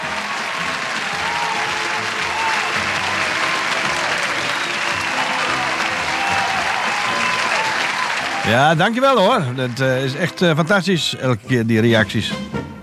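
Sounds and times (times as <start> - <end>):
applause: 0.0 - 10.8
speech: 8.5 - 12.6.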